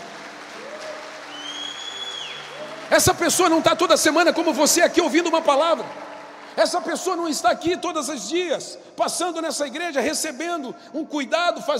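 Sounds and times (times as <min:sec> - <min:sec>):
audience applause: 0:00.0 - 0:07.4
speech: 0:02.9 - 0:11.7.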